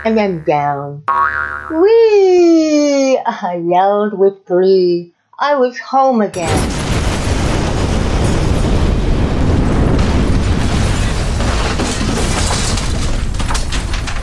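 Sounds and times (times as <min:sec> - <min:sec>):
speech: 0:00.0 - 0:06.8
tower of blocks crashing to the ground: 0:06.4 - 0:14.2.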